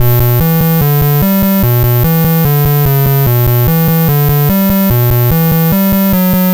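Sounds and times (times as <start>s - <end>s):
Apple II chiptune bass: 0.0s - 6.5s.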